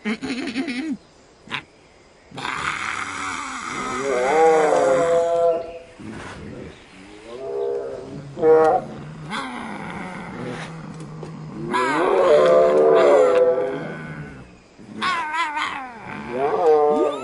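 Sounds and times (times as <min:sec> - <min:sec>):
people imitating tiger roars: 0:02.4 - 0:05.7, 0:07.3 - 0:17.2.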